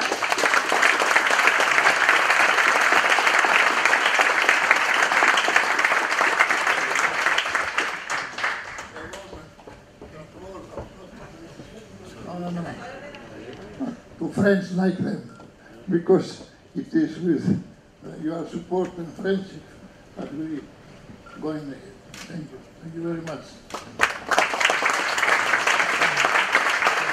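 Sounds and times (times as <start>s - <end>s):
audience applause: 0.0s - 9.3s, 23.7s - 27.1s
speech: 14.5s - 15.3s, 15.9s - 19.7s, 20.3s - 20.8s, 21.4s - 23.7s.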